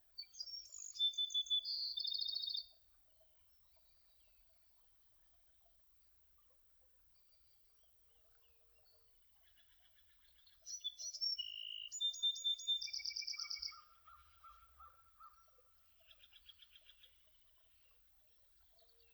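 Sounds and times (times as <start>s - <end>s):
birds: 0.0s - 19.1s.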